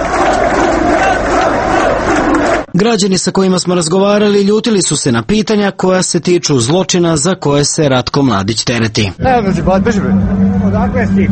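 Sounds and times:
crowd applauding at a political rally: 0:00.0 - 0:02.8
speech: 0:02.8 - 0:11.3.

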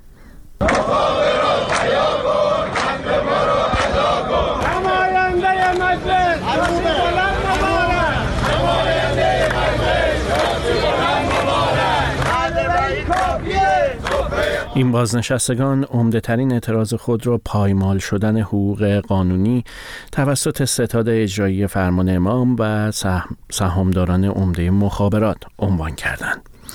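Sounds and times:
protesters chanting slogans at a retirees' rally in Iran: 0:00.6 - 0:15.0
speech: 0:14.8 - 0:26.7.

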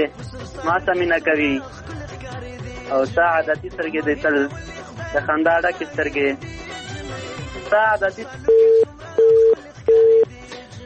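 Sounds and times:
speech: 0:00.0 - 0:06.6, 0:07.7 - 0:08.8
telephone busy tone after a call is disconnected: 0:08.4 - 0:10.3.

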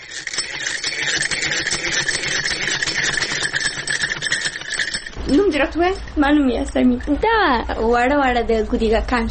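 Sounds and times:
sewing machine running at a tailoring course in Kabul: 0:00.0 - 0:06.3
speech: 0:05.3 - 0:09.2.

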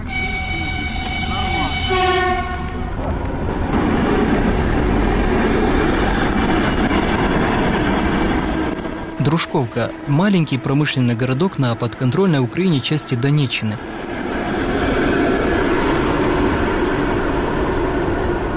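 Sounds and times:
reserve electric train horn: 0:00.0 - 0:02.9, 0:08.5 - 0:12.3
reserve electric train departing from the second track, rolling rumble: 0:00.0 - 0:18.5
speech: 0:09.4 - 0:14.2.

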